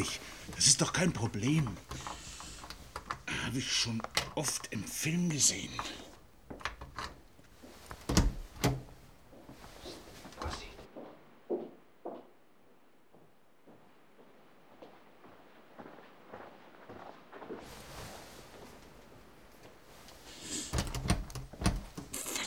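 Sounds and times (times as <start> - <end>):
speech: 0.0 - 2.1, 3.5 - 6.0
tool forcing open a locked door: 0.2 - 4.7, 5.6 - 7.3, 7.9 - 9.0, 20.7 - 22.3.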